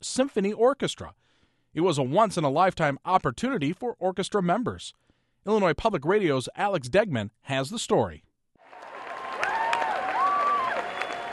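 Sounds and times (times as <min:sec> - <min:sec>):
speech: 0:00.1 - 0:08.3
concert crowd applause and cheering: 0:08.6 - 0:11.3
squeals of delight: 0:08.7 - 0:11.3.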